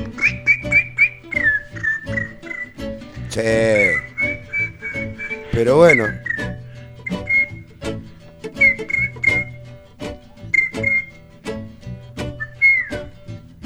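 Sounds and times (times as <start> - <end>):
whistled bird-like calls: 0.0 - 2.8, 3.6 - 7.8, 8.6 - 9.6, 10.3 - 11.3, 12.4 - 13.1
speech: 3.3 - 4.0, 5.6 - 6.2.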